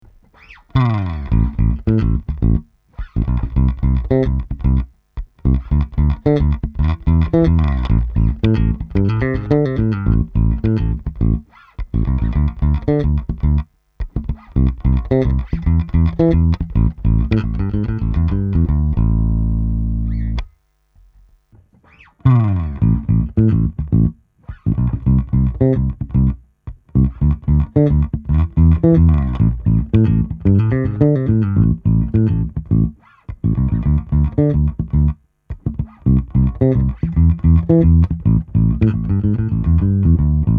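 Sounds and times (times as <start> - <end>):
fingerstyle bass: 0.0 - 21.4, 22.0 - 40.5.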